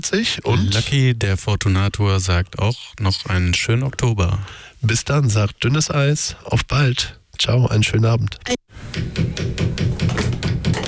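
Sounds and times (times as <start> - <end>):
speech: 0.0 - 8.6
knocking on an object that does not work: 9.0 - 10.8.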